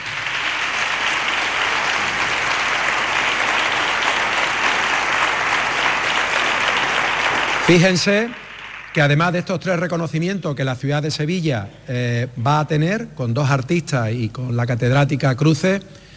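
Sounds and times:
audience applause: 0:00.0 - 0:09.2
speech: 0:07.7 - 0:08.4, 0:09.0 - 0:16.1.

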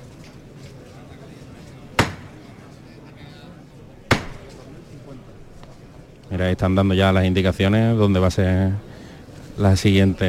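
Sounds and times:
murmur of noise: 0:00.0 - 0:10.2
wooden hammer knocks signalling procession float bearers: 0:02.0 - 0:02.4, 0:04.1 - 0:04.6
speech: 0:06.4 - 0:08.9, 0:09.6 - 0:10.2.

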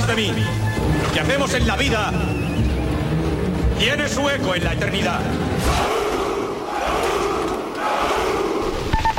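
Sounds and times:
speech: 0:00.2 - 0:02.9, 0:03.8 - 0:06.0
roaring battle crowd: 0:05.2 - 0:09.1.

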